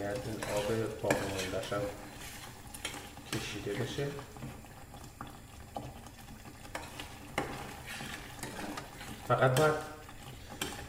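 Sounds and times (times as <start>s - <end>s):
stirring mashed potatoes scraping a steel pan: 0.0s - 3.9s, 6.6s - 10.8s
soft sizzle of mashed potatoes in a steel pan: 0.0s - 10.8s
speech: 0.2s - 2.3s, 3.3s - 4.5s, 9.3s - 9.9s.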